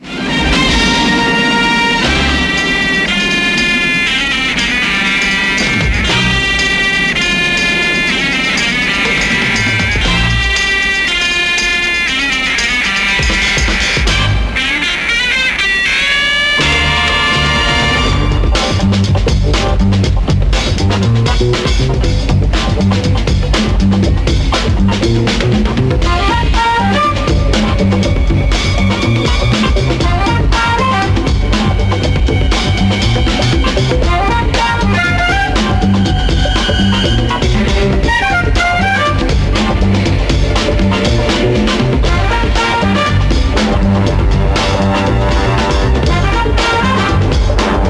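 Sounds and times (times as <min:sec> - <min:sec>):
fuzz music theme: 0:00.0 - 0:47.8.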